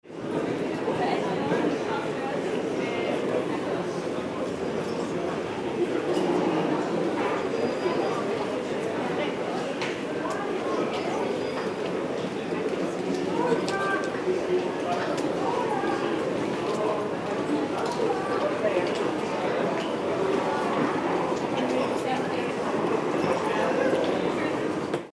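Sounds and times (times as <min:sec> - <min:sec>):
airport waiting area ambience: 0:00.1 - 0:25.1.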